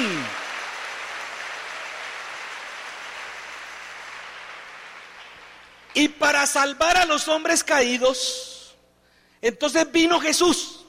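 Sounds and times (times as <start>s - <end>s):
audience applause: 0.0s - 6.0s
speech: 6.0s - 8.5s, 9.4s - 10.8s.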